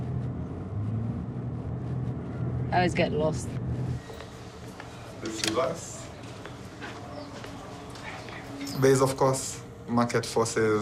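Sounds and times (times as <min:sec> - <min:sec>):
car driving on roads in Nairobi: 0:00.0 - 0:08.6
speech: 0:02.7 - 0:03.6, 0:05.3 - 0:06.0, 0:08.8 - 0:10.8.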